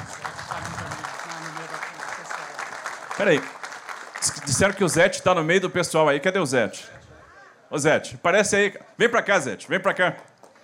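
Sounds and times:
audience applause: 0.0 - 5.4
speech: 3.2 - 3.6, 4.2 - 7.0, 7.7 - 10.3.

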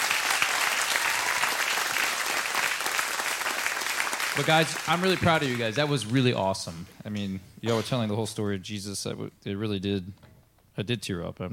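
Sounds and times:
audience applause: 0.0 - 6.2
speech: 4.4 - 11.5.

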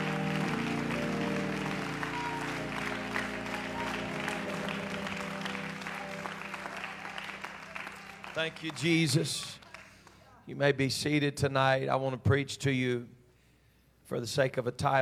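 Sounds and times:
organ-like sustained tones: 0.0 - 10.0
audience clapping hands: 0.0 - 10.4
speech: 8.4 - 9.6, 10.5 - 13.2, 14.1 - 14.9.

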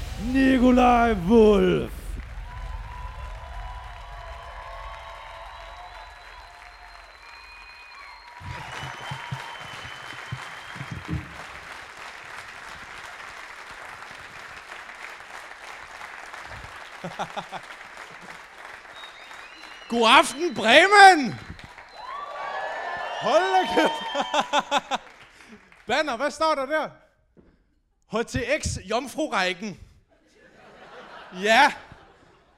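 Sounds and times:
scattered crowd cheers: 0.0 - 25.6
speech: 0.2 - 2.0, 20.0 - 21.4, 23.2 - 25.1, 25.9 - 27.0, 28.1 - 29.8, 31.3 - 31.8
audience applause: 2.1 - 26.0
laughter: 16.9 - 18.3, 23.2 - 25.2, 30.3 - 32.5.

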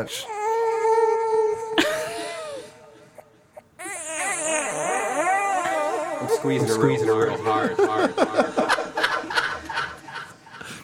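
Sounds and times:
speech: 0.0 - 0.4, 6.2 - 8.6
baby crying: 0.1 - 2.0, 3.8 - 7.2
laughter: 1.8 - 2.7, 6.4 - 10.7.

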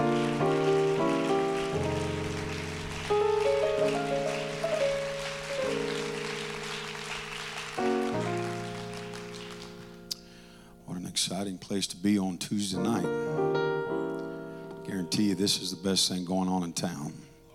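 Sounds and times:
audience clapping hands: 0.0 - 10.1
speech: 11.6 - 13.6, 15.0 - 17.3.

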